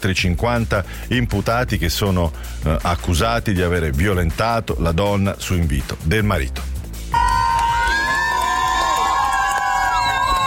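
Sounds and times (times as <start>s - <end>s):
speech: 0.0s - 7.2s
crowd cheering outside the Avignon courthouse: 7.1s - 10.4s.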